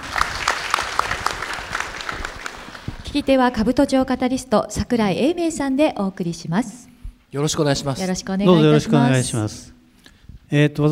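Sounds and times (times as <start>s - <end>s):
audience applause welcoming a speaker: 0.0s - 3.1s
speech: 3.1s - 9.7s, 10.5s - 10.8s.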